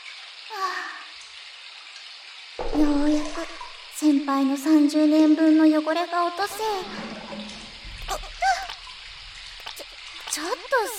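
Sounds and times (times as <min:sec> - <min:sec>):
shower water rinsing off soap foam: 0:00.0 - 0:05.0, 0:06.4 - 0:10.9
speech: 0:00.5 - 0:01.0, 0:02.6 - 0:07.2.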